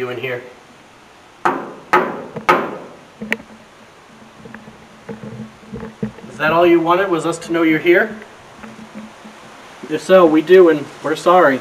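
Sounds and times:
speech: 0.0 - 0.6, 6.4 - 8.3, 9.9 - 11.5
knocking: 1.4 - 3.7, 4.3 - 6.7.

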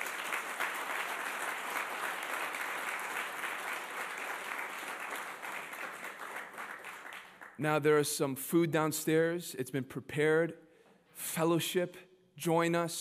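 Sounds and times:
audience applauding: 0.0 - 7.6
speech: 7.6 - 10.6, 11.2 - 13.0.

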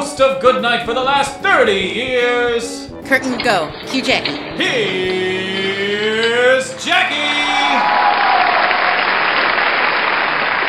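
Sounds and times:
speech: 0.2 - 5.6
studio audience applauding: 4.3 - 10.6.

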